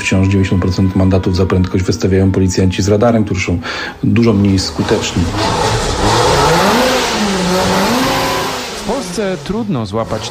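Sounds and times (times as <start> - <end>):
speech: 0.1 - 5.9, 9.2 - 10.2
car engine revving loudly: 4.6 - 10.2.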